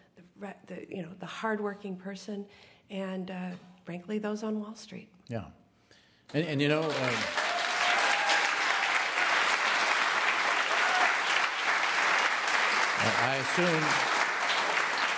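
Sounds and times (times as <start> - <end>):
speech: 0.4 - 5.6, 6.3 - 7.4, 13.2 - 14.2
audience applause during a political talk: 6.4 - 15.1.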